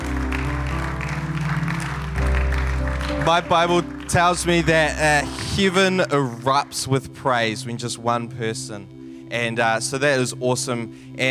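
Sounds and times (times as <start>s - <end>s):
audience applause: 0.0s - 6.4s
speech: 3.2s - 11.2s.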